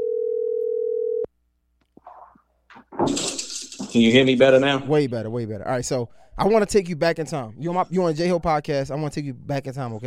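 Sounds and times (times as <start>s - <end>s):
telephone dial tone: 0.0s - 1.3s
speech: 3.0s - 10.0s.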